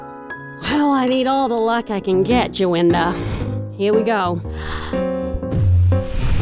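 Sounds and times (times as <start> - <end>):
speech: 0.6 - 5.1
blowing on dice for luck: 5.5 - 6.4.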